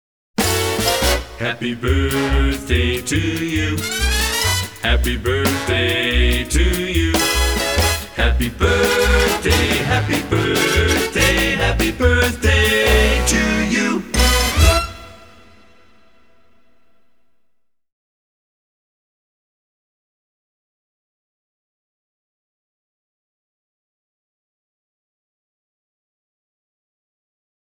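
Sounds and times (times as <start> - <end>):
birthday song singing: 0.4 - 16.3.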